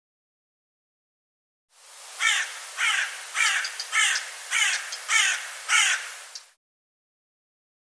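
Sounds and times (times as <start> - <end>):
bird giving harsh raspy caws: 2.2 - 6.5.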